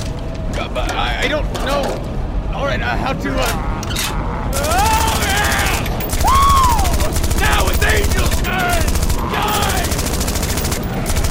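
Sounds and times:
speech: 0.7 - 5.0
rapid rifle gunfire: 4.6 - 11.2.

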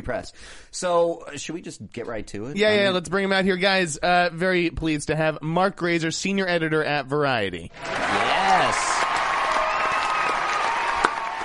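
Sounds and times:
speech: 0.0 - 8.9
canned applause sound effect: 7.8 - 11.4.

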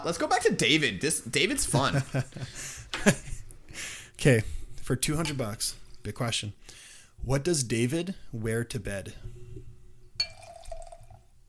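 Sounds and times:
speech: 0.0 - 9.4
liquid being poured into a glass in front of the mic: 9.4 - 11.4.

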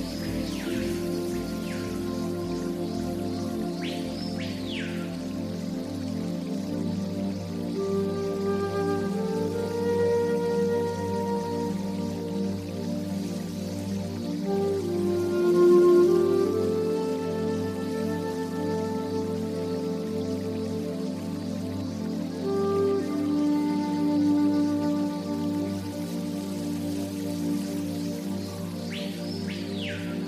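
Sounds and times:
forest water: 0.0 - 30.2
new age native american flute music: 0.0 - 30.2.

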